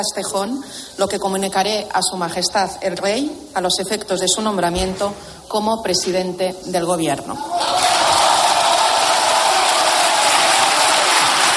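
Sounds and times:
speech: 0.0s - 7.8s
applause and crowd cheering in a parliament chamber: 7.5s - 11.5s.

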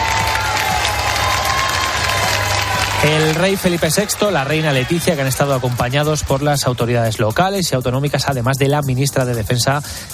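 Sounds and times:
warm applause: 0.0s - 7.4s
speech: 3.0s - 10.1s.

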